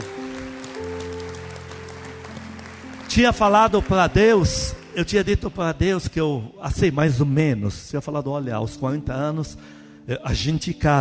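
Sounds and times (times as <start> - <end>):
audience applauding: 0.0 - 5.7
speech: 3.1 - 10.9.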